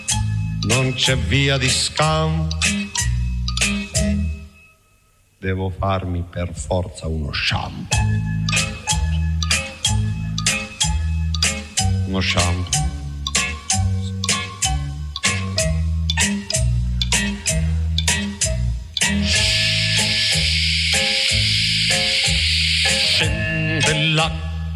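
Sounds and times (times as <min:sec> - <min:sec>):
bouncy rhythmic music track with a plucked bass line: 0:00.0 - 0:04.4, 0:07.9 - 0:19.7, 0:23.1 - 0:24.7
speech: 0:00.6 - 0:03.8, 0:05.4 - 0:08.7, 0:12.1 - 0:12.8
shower water running: 0:19.3 - 0:23.2.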